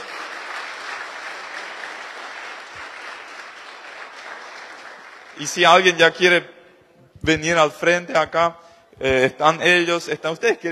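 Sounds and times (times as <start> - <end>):
audience applause: 0.0 - 6.0
speech: 5.4 - 6.6, 7.2 - 10.7.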